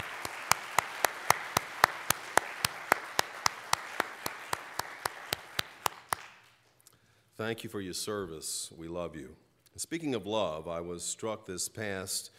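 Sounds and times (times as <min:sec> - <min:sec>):
audience applause: 0:00.0 - 0:06.5
speech: 0:07.4 - 0:12.3.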